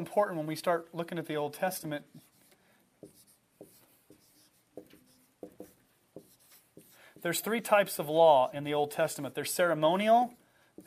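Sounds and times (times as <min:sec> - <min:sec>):
speech: 0:00.0 - 0:02.3, 0:07.2 - 0:10.8
writing notes on a board during a class lecture: 0:02.0 - 0:07.9, 0:10.3 - 0:10.8.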